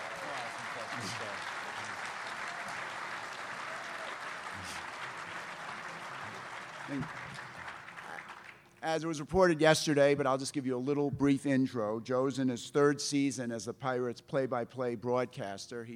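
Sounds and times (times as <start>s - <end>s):
audience applause: 0.0s - 8.7s
speech: 6.9s - 7.3s, 8.8s - 15.9s.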